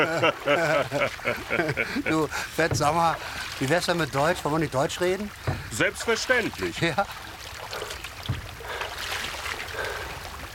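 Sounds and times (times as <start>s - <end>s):
laughter: 0.0s - 2.6s
speech: 0.0s - 7.3s
stolen boat moving through water: 0.0s - 10.5s
thump: 2.7s - 3.0s, 5.5s - 5.7s.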